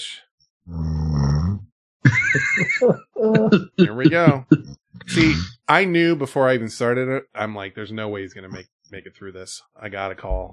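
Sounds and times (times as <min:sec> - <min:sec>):
person snoring: 0:00.7 - 0:01.6, 0:03.4 - 0:05.5
laughter: 0:02.1 - 0:10.2
speech: 0:02.1 - 0:10.5.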